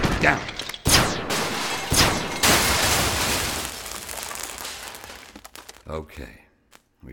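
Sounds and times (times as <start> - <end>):
speech: 0.2 - 0.6, 5.9 - 6.4
blaster trap firing: 0.9 - 2.8.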